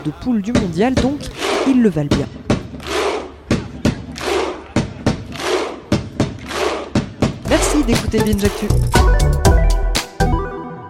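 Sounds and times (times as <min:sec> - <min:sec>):
speech: 0:00.0 - 0:02.4, 0:07.9 - 0:09.4
football supporters' thunder clap: 0:02.5 - 0:07.2.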